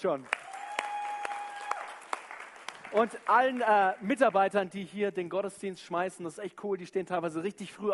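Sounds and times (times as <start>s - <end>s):
speech: 0.0s - 0.5s, 2.9s - 7.9s
audience applauding: 0.0s - 4.0s.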